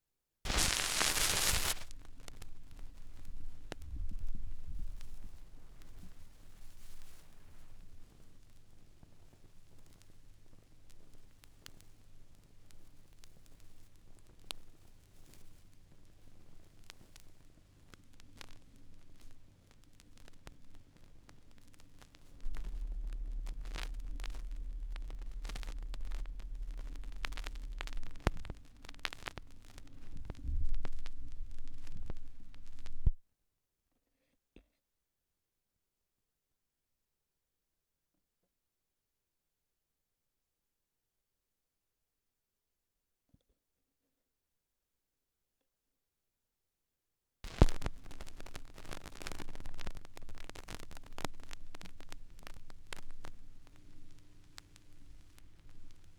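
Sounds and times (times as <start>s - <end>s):
vinyl record noise: 0.5s - 33.2s, 47.4s - 56.1s.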